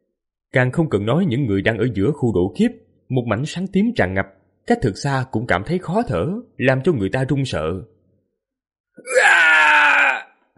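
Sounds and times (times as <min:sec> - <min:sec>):
speech: 0:00.5 - 0:07.9
tormented screaming and wailing: 0:09.0 - 0:10.5.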